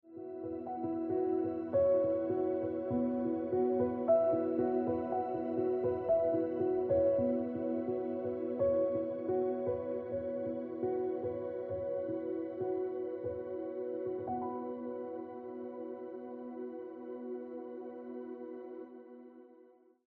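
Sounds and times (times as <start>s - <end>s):
piano music: 0.1s - 19.1s.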